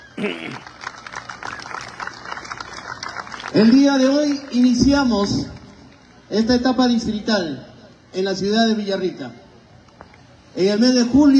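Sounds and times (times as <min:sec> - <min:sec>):
speech: 0:00.2 - 0:00.8, 0:03.5 - 0:05.6, 0:06.3 - 0:09.4, 0:10.6 - 0:11.3
audience applause: 0:00.2 - 0:04.8.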